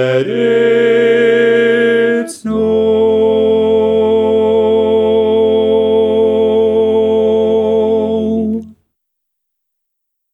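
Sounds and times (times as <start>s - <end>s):
baritone predominant: 0.1s - 8.7s.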